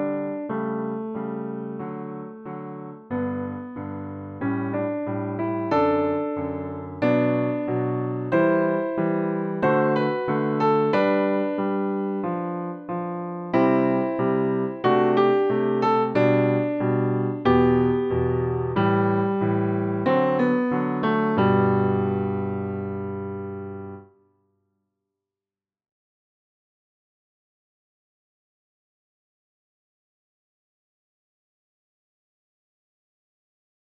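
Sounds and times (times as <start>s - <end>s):
piano piece: 0.0s - 24.1s.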